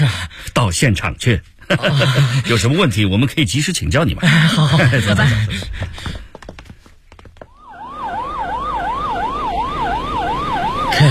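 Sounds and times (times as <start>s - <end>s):
speech: 0.7s - 6.2s
laughter: 1.6s - 2.9s, 4.2s - 6.2s
police car siren wailing: 7.6s - 11.0s.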